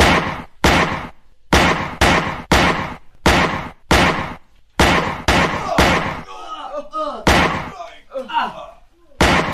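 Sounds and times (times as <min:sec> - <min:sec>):
gunshots in a staged radio drama shootout: 0:00.0 - 0:06.3, 0:07.2 - 0:07.9, 0:09.2 - 0:09.5
voices: 0:05.4 - 0:09.5.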